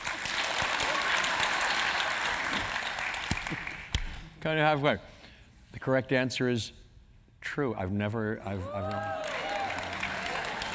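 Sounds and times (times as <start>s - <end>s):
crowd applause: 0.0s - 3.9s, 8.8s - 10.7s
speech: 4.4s - 5.1s, 5.8s - 6.8s, 7.4s - 9.3s.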